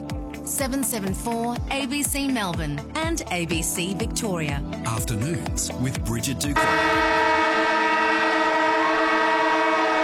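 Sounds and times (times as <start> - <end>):
speech: 0.5 - 7.3
siren: 6.6 - 10.0.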